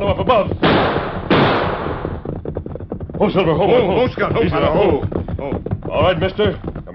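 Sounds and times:
speech: 0.0 - 0.6, 3.2 - 6.9
gunshot from an ambush: 0.6 - 2.2.

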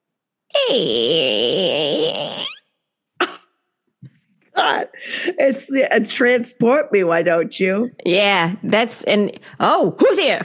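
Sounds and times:
voice imitating a creaking door: 0.5 - 2.8
speech: 0.7 - 2.3, 4.9 - 10.4.

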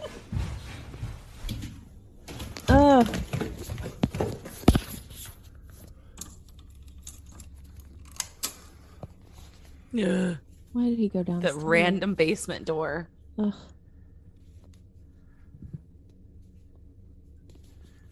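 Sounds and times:
ping pong ball bouncing across a floor: 0.0 - 5.3
low hum: 0.0 - 18.1
speech: 10.0 - 13.8.

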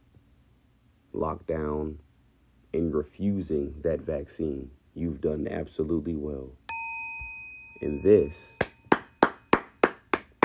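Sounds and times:
speech: 1.1 - 2.1, 2.7 - 6.6, 7.8 - 8.6
hand claps: 8.6 - 10.4.

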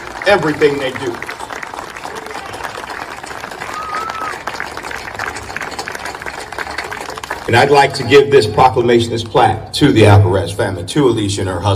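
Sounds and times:
audience applause: 0.0 - 8.2
speech: 0.3 - 1.3, 7.5 - 11.7.

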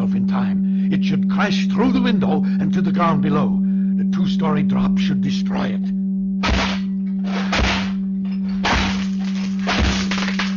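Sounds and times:
speech: 1.0 - 6.7
door being broken down: 6.4 - 10.5.

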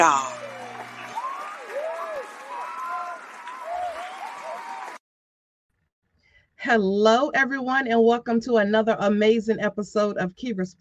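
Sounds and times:
speech: 0.0 - 0.4, 6.6 - 10.7
audience applause welcoming a show host: 0.0 - 5.0
cheering voices: 0.0 - 5.0.

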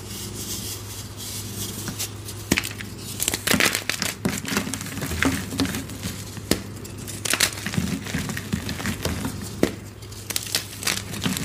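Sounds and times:
baby oil gym chalk being crushed: 0.0 - 11.4.

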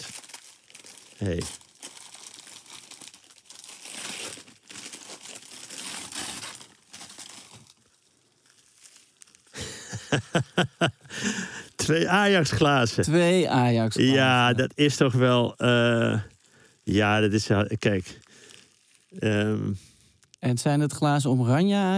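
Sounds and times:
gift wrapping paper crinkled and torn: 0.0 - 9.8, 15.2 - 19.6
speech: 1.2 - 1.6, 10.1 - 11.0, 11.9 - 16.3, 16.9 - 18.2, 19.2 - 19.9, 20.5 - 21.9
laughter: 9.6 - 11.4.

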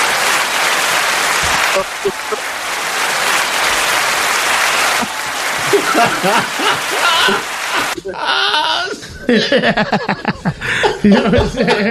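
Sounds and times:
audience applause: 0.0 - 8.0
laughter: 1.6 - 3.9, 4.9 - 11.9
speech: 1.8 - 2.5, 5.7 - 11.9.

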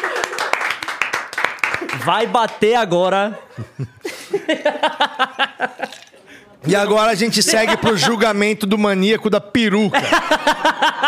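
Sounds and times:
hands clapping: 0.0 - 2.8
speech: 2.0 - 6.0, 6.6 - 11.0
laughter: 3.0 - 6.4, 7.1 - 8.3, 9.8 - 11.0.

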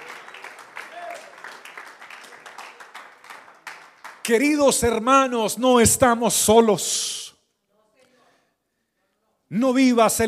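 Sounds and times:
audience applauding: 0.0 - 4.6
speech: 4.3 - 7.2, 9.5 - 10.2.

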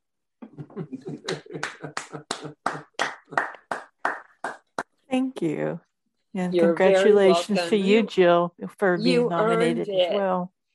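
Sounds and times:
laughter: 0.4 - 3.7
speech: 0.8 - 2.6, 5.4 - 10.6
round of applause: 1.3 - 4.8.

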